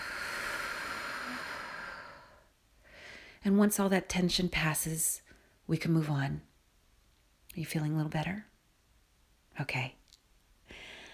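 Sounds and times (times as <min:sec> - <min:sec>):
deep breathing in and out: 0:00.0 - 0:03.4, 0:10.6 - 0:11.1
speech: 0:03.4 - 0:06.5, 0:07.6 - 0:08.5, 0:09.6 - 0:10.0.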